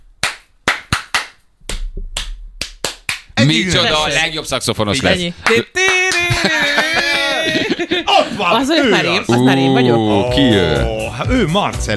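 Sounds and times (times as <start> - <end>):
hand clapping: 0.2 - 3.4, 5.4 - 6.5
speech: 3.4 - 6.8, 7.5 - 11.9
laughter: 5.5 - 10.9.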